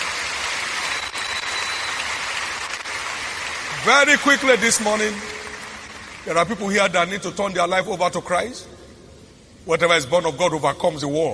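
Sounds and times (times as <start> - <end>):
audience clapping: 0.0 - 7.0
speech: 3.8 - 5.4, 6.2 - 8.8, 9.6 - 11.3.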